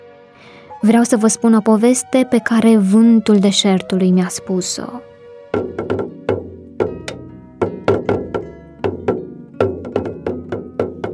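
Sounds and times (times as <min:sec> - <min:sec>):
speech: 0:00.8 - 0:06.0
drum beats: 0:05.5 - 0:11.1.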